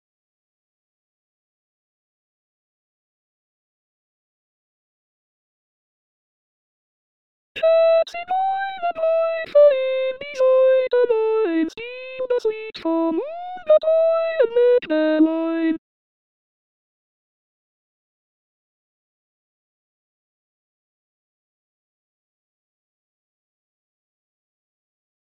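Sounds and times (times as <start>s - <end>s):
soprano singing: 7.6s - 15.8s.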